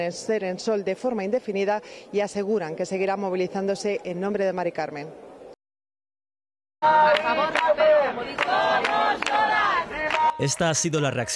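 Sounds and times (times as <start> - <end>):
speech: 0.0 - 5.3, 10.4 - 11.3
large protest crowd chanting a slogan: 6.8 - 11.3
sharp rhythmic beats: 10.3 - 11.3.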